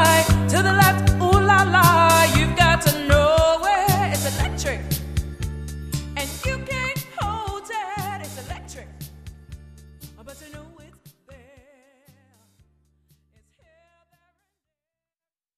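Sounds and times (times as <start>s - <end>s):
cover band playing line dance music: 0.0s - 11.8s.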